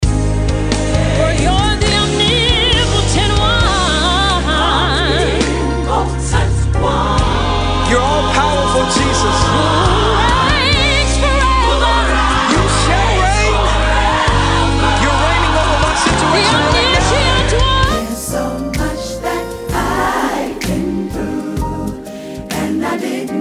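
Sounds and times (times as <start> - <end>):
gospel medley singing: 0.0 - 23.3.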